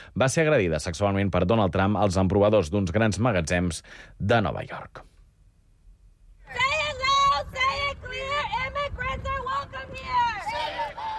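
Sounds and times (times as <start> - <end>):
speech: 0.2 - 5.1
shouting at an improvised protest in Houston Texas: 6.5 - 11.1.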